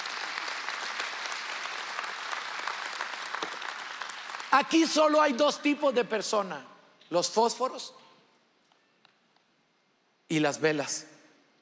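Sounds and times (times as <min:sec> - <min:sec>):
audience applause: 0:00.0 - 0:05.1
speech: 0:04.6 - 0:08.0, 0:10.3 - 0:11.1.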